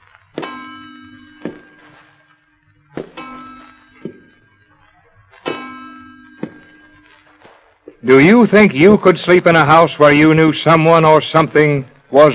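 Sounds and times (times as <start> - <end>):
old clock chiming: 0.4 - 8.7
speech: 8.0 - 12.3.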